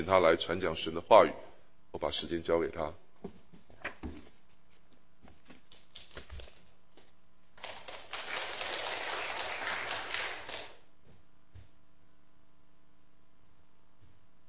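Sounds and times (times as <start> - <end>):
speech: 0.0 - 3.4
audience applause: 7.6 - 10.8.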